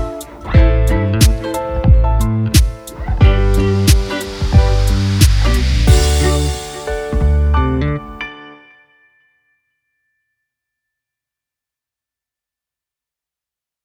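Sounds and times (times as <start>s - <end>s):
instrumental music: 0.0s - 8.9s.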